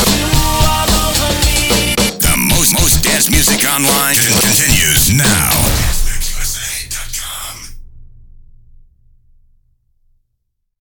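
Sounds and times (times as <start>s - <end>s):
beat mix music: 0.2s - 7.6s.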